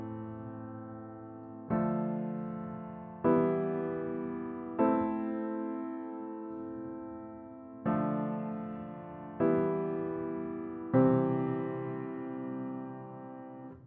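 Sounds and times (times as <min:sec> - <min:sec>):
piano samples: 0:00.0 - 0:13.8.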